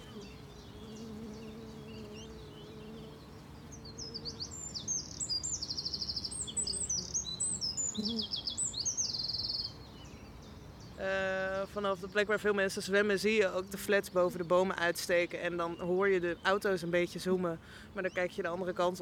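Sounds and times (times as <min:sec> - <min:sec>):
buzzing: 0:00.0 - 0:04.5
small birds chirping: 0:00.0 - 0:19.0
speech: 0:08.0 - 0:08.4, 0:11.0 - 0:19.0.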